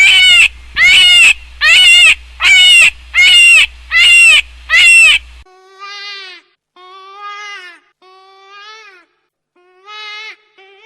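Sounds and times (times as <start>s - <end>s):
hare giving long nasal wailing screams: 0.0s - 5.2s.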